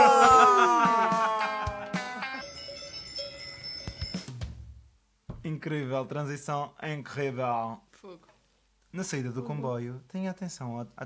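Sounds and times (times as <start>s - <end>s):
laughter: 0.0s - 2.4s
cowbell clanking: 2.3s - 4.4s
speech: 5.6s - 8.3s, 8.9s - 11.0s.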